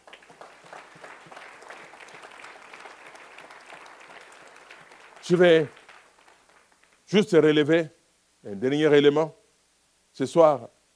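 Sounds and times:
audience applause: 0.0 - 7.0
speech: 5.3 - 5.8, 7.1 - 9.4, 10.2 - 10.8.

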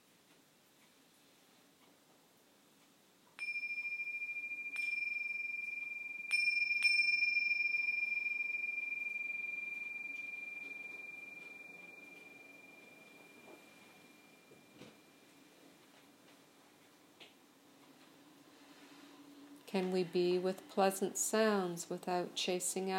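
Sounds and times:
meditation bells ringing: 3.4 - 15.7
speech: 19.7 - 22.9.

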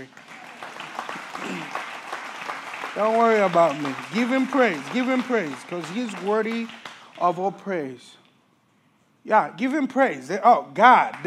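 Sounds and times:
speech: 0.0 - 0.2, 3.0 - 8.2, 9.2 - 11.2
audience clapping: 0.0 - 7.8, 10.7 - 11.2.

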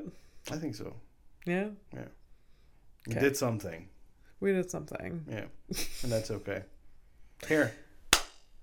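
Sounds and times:
speech: 0.1 - 2.2, 3.0 - 6.7, 7.4 - 7.8
sharp hand claps: 8.1 - 8.5.

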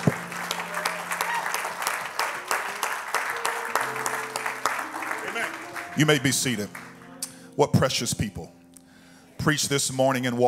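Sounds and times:
audience clapping hands: 0.0 - 7.4
speech: 6.0 - 6.8, 7.6 - 8.6, 9.4 - 10.4.

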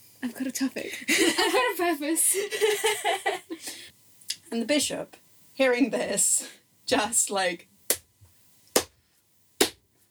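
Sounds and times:
speech: 0.2 - 3.9, 4.5 - 7.7
laughter: 0.9 - 3.9
slow hand claps: 8.7 - 9.0, 9.6 - 9.8.

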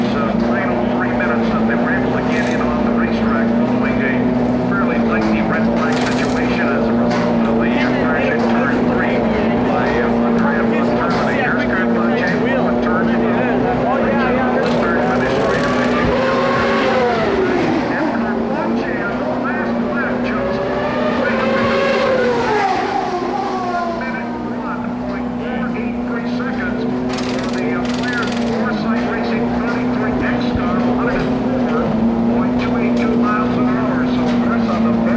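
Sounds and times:
turbocharged V8 race cars idling and revving: 0.0 - 35.1
voices: 0.0 - 35.1.

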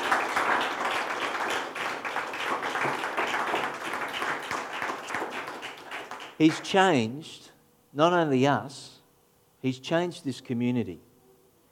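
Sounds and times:
audience applause: 0.0 - 6.7
speech: 6.4 - 8.9, 9.6 - 11.1.

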